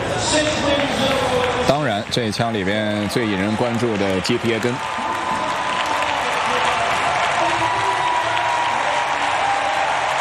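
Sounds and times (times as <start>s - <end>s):
stadium crowd clapping at a Diamond League athletics meeting in Eugene: 0.1s - 10.1s
speech: 2.2s - 5.0s.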